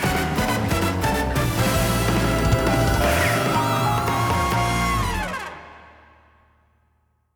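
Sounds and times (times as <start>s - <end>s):
karaoke singing: 0.0s - 5.5s.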